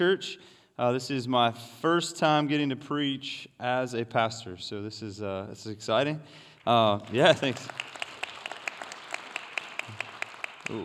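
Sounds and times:
speech: 0.0 - 8.0, 10.7 - 10.8
brief soft audience applause: 7.0 - 10.8.

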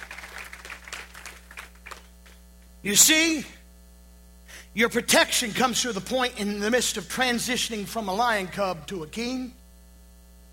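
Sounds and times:
church congregation clapping in praise during a sermon: 0.0 - 2.4
low electrical hum: 0.0 - 10.5
speech: 2.8 - 3.6, 4.8 - 9.6.

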